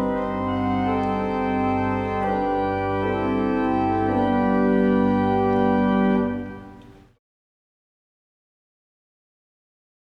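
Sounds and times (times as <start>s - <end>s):
chorale prelude: 0.0s - 7.2s.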